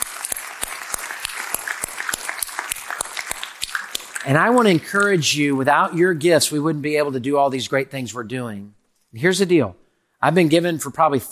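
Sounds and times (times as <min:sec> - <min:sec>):
audience applause and cheering: 0:00.0 - 0:04.2
speech: 0:04.2 - 0:11.3.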